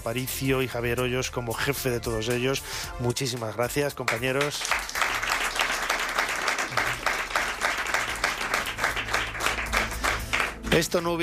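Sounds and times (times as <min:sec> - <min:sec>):
speech: 0:00.0 - 0:04.9, 0:10.8 - 0:11.2
audience applause: 0:04.1 - 0:10.8.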